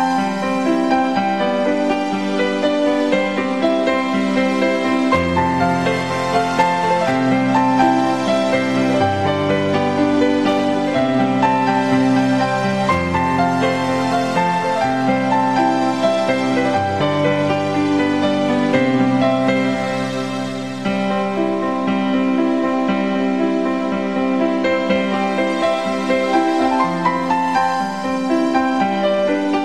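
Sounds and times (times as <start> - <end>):
piano piece: 0.0 - 29.6.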